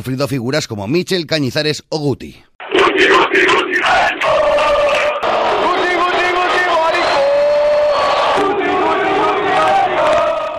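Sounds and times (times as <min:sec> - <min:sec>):
speech: 0:00.0 - 0:04.8
large football stadium crowd chanting insults in unison: 0:02.6 - 0:10.5.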